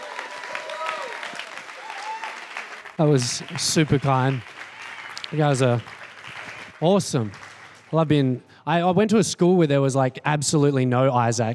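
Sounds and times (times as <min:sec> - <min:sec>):
audience applause: 0:00.0 - 0:08.2
speech: 0:03.0 - 0:04.6, 0:05.3 - 0:06.0, 0:06.8 - 0:11.5.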